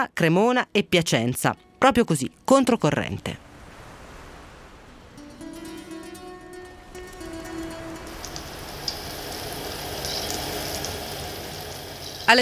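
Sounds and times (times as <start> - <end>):
speech: 0.0 - 3.5
steady rain falling in the morning in Polesine Parmense: 3.4 - 12.3.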